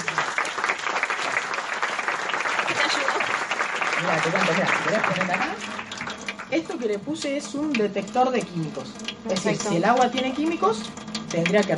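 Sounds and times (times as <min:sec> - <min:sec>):
audience applause: 0:00.0 - 0:06.5
speech: 0:04.0 - 0:05.9, 0:06.5 - 0:11.7.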